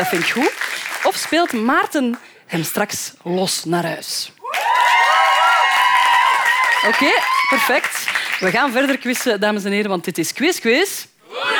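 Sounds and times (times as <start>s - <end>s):
quiz show studio audience cheering: 0.0s - 1.6s, 4.4s - 8.5s
speech: 0.0s - 4.4s, 6.8s - 11.5s.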